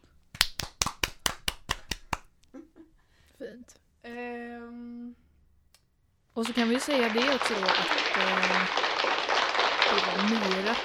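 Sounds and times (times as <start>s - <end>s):
brisk hand clapping: 0.3s - 2.4s, 6.4s - 10.8s
speech: 6.4s - 8.9s, 9.9s - 10.8s
laughter: 6.5s - 10.8s.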